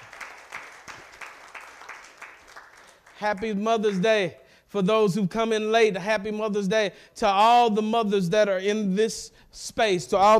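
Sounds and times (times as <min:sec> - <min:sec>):
crowd applause: 0:00.0 - 0:04.0
speech: 0:03.2 - 0:10.3.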